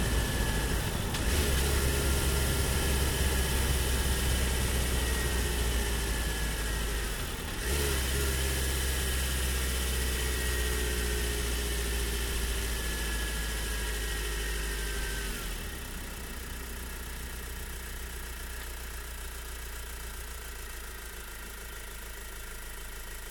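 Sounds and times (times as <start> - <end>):
van driving on asphalt: 0.0 - 23.2.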